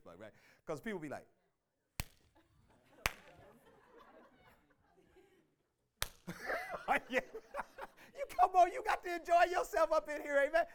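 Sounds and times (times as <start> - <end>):
speech: 0.2 - 1.4, 6.3 - 10.7
hand clapping on the two and four: 2.0 - 2.4, 3.0 - 3.6, 6.0 - 6.4
laughter: 2.4 - 5.6, 6.3 - 10.6.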